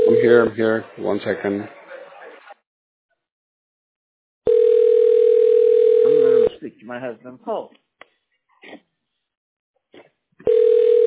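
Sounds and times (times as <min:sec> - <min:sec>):
telephone ringing: 0:00.0 - 0:00.4, 0:04.5 - 0:06.5, 0:10.4 - 0:11.0
speech: 0:00.2 - 0:01.8, 0:06.8 - 0:07.8.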